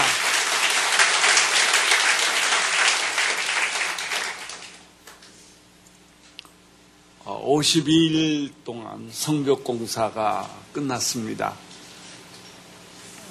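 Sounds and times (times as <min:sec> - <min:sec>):
audience applause: 0:00.0 - 0:04.8
speech: 0:07.5 - 0:11.7.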